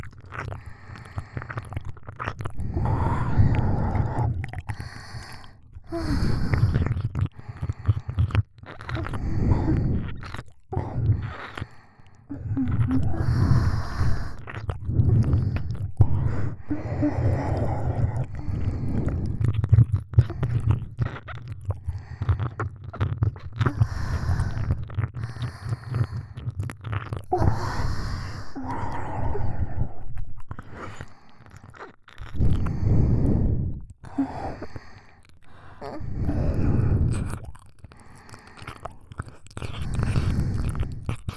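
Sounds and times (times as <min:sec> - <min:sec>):
very deep ear licking: 0:00.0 - 0:41.3
sweet breathing: 0:02.6 - 0:08.2, 0:08.9 - 0:19.4, 0:23.7 - 0:26.4, 0:27.3 - 0:31.6, 0:32.4 - 0:38.9.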